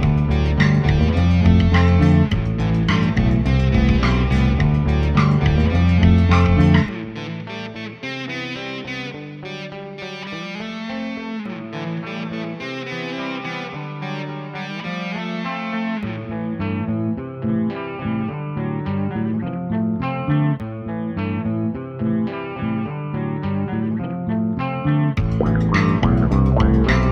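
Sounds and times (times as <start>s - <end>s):
bass: 0.0s - 7.2s, 16.1s - 27.1s.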